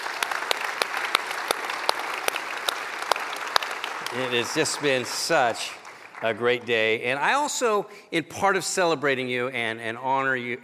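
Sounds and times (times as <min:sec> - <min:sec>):
audience applauding: 0:00.0 - 0:07.4
speech: 0:04.1 - 0:10.6.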